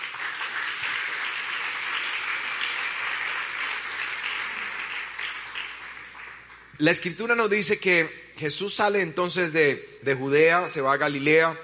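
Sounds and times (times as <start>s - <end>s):
audience applause: 0.0s - 6.7s
speech: 6.8s - 11.6s.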